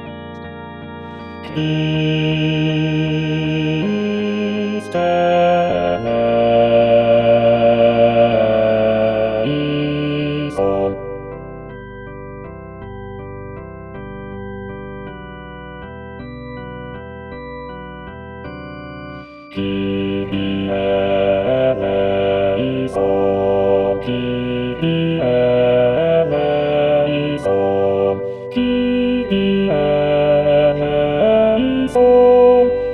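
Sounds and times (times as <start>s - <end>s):
bass voice singing a kyrie: 1.1s - 11.8s, 19.6s - 32.9s.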